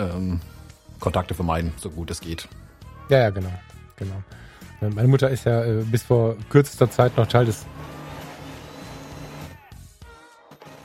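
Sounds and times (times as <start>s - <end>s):
speech: 0.0s - 7.9s
printer starting to print: 6.8s - 9.6s.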